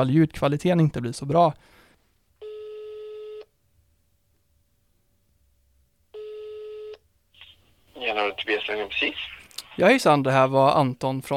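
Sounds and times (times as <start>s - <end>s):
speech: 0.0s - 1.8s, 8.4s - 11.3s
telephone ringback tone: 2.4s - 3.4s, 6.2s - 6.9s.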